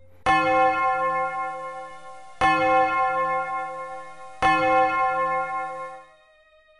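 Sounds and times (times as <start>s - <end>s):
deep distant clock tower bell tolling: 0.3s - 6.1s.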